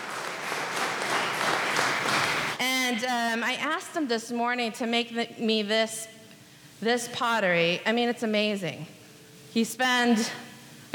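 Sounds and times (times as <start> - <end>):
audience applause: 0.0 - 2.6
speech: 2.9 - 6.2, 6.8 - 10.9.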